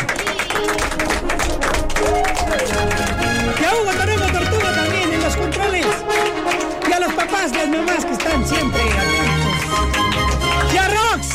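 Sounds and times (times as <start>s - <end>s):
voices cheering: 0.0s - 5.8s
crowd applause: 0.0s - 11.3s.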